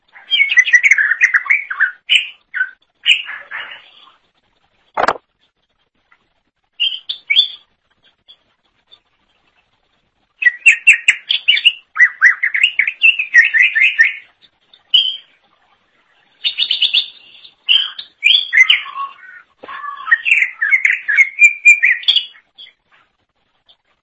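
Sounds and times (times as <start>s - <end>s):
leafbird song: 0.2s - 4.1s, 10.4s - 15.4s, 16.3s - 22.8s.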